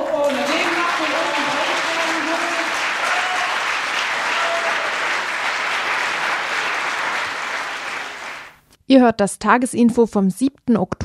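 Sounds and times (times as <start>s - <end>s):
audience applause: 0.0s - 8.6s
speech: 8.9s - 11.0s.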